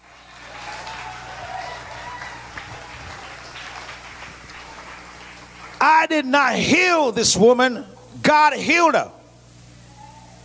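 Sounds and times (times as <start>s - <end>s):
audience clapping: 0.0s - 6.2s
speech: 5.9s - 9.2s.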